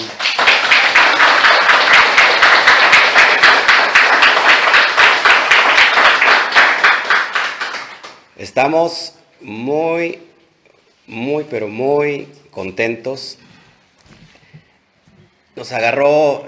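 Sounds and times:
audience applause: 0.0 - 8.2
speech: 8.5 - 10.3, 11.1 - 13.5, 15.6 - 16.4.

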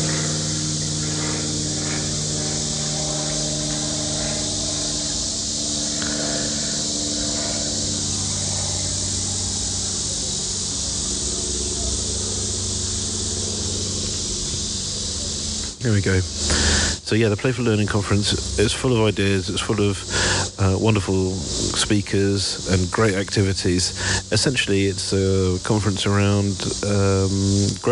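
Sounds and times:
aeroplane passing overhead: 0.0 - 27.9
speech: 15.8 - 27.9.

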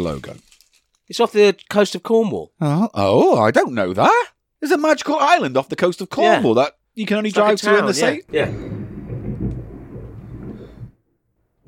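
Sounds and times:
speech: 0.0 - 0.5, 1.1 - 8.7
thunder: 8.3 - 11.0.

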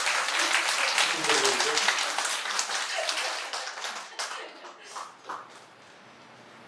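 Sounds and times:
crowd applauding: 0.0 - 5.7
laughter: 0.4 - 2.0, 2.8 - 5.2.

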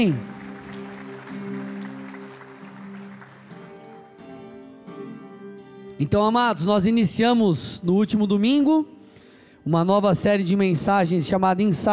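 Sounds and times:
speech: 0.0 - 0.3, 6.0 - 9.0, 9.6 - 11.9
audience applause: 0.0 - 4.5.

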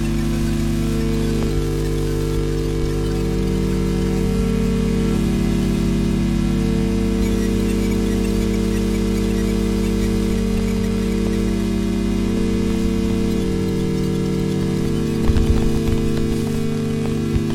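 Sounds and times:
electromagnetic interference hiss captured with an EM coil pick-up: 0.0 - 17.5
electromagnetic interference low buzzing hum: 0.0 - 17.5
crackling burst: 14.8 - 17.5.

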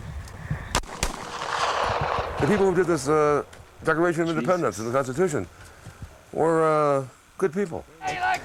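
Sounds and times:
gunshots in a gunfight: 0.7 - 4.4
speech: 2.4 - 8.2.

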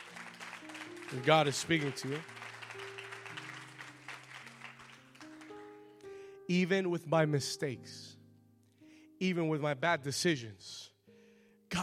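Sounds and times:
audience clapping hands: 0.0 - 5.8
organ or keyboard chords: 0.0 - 8.2
speech: 1.1 - 2.3, 6.5 - 8.1, 9.2 - 10.8.

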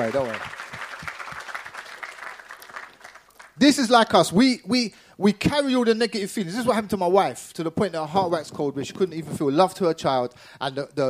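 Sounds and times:
speech: 0.0 - 0.6, 3.6 - 11.0
crowd applauding: 0.0 - 3.7.

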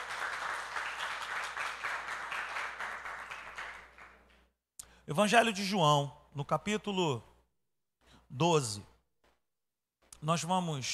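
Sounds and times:
audience applause: 0.0 - 4.2
speech: 5.1 - 7.3, 8.3 - 8.9, 10.2 - 10.9.

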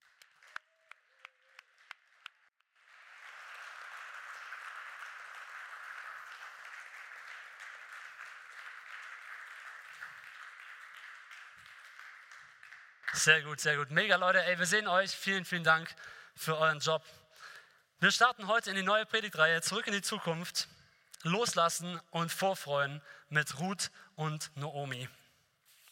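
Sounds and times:
crowd applause: 0.0 - 13.6
speech: 13.2 - 17.2, 18.0 - 25.2.

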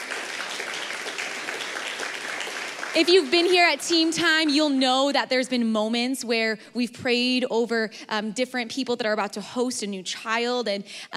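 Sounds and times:
audience applause: 0.0 - 3.8
speech: 2.9 - 11.1.

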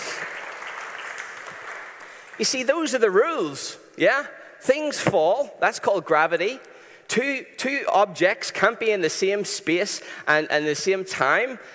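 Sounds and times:
audience clapping: 0.0 - 3.2
speech: 2.4 - 11.7.

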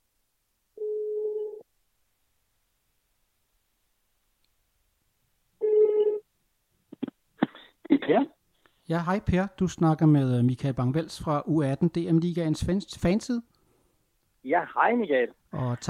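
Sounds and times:
telephone ringback tone: 0.8 - 1.6, 5.6 - 6.2
speech: 8.9 - 13.5, 14.4 - 15.8.

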